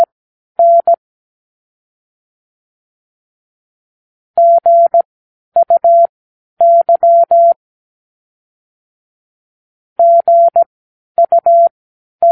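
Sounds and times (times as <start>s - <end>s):
morse code practice words: 0.0s - 1.0s, 4.4s - 5.0s, 5.6s - 7.6s, 10.0s - 12.3s.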